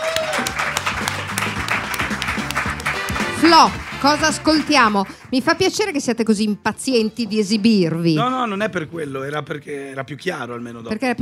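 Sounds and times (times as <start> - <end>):
voices and faint cheers: 0.0 - 1.3
audience applause: 0.0 - 5.4
speech: 3.4 - 11.2.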